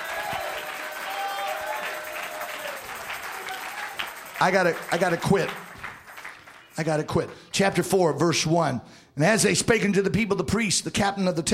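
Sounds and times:
voices cheering and calling out: 0.0 - 5.7
audience clapping: 0.0 - 7.5
speech: 4.4 - 5.6, 6.8 - 11.5.

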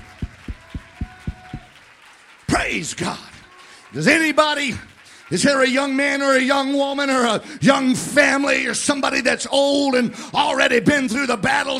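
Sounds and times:
church congregation clapping hands in unison during a service: 0.0 - 9.2
speech: 2.7 - 3.3, 3.9 - 11.7.

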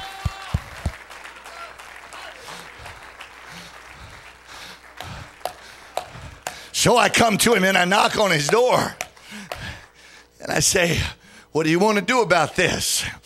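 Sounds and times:
audience clapping hands: 0.0 - 6.7, 8.2 - 10.0
speech: 6.8 - 9.0, 10.4 - 13.2.

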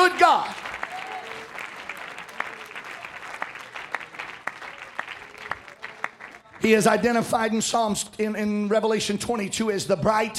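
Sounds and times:
audience clapping hands: 0.0 - 7.4
speech: 0.1 - 0.7, 6.6 - 10.3.

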